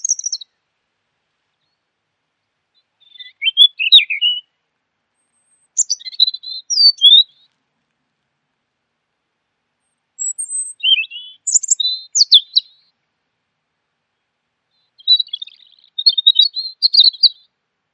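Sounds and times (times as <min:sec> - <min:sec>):
bird song with twittering and chirps: 0:00.0 - 0:00.5, 0:03.0 - 0:04.4, 0:05.2 - 0:07.5, 0:10.2 - 0:12.8, 0:14.9 - 0:17.4.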